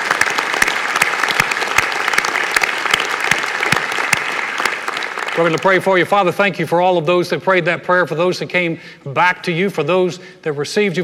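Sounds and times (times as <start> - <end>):
audience hand clapping: 0.0 - 6.1
speech: 5.4 - 11.0.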